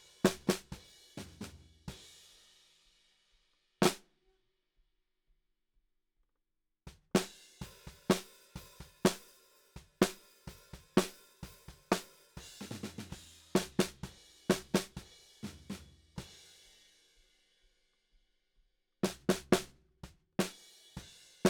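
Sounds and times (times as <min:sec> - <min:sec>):
snare drum: 0:00.0 - 0:01.9, 0:03.8 - 0:04.0, 0:06.9 - 0:15.9, 0:19.0 - 0:19.8.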